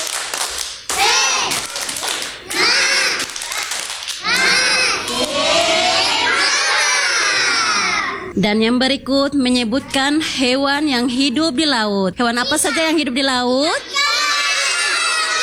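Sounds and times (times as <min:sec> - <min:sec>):
clapping: 0:00.0 - 0:05.4
children chanting: 0:00.9 - 0:08.3, 0:13.8 - 0:15.4
speech: 0:08.4 - 0:14.0.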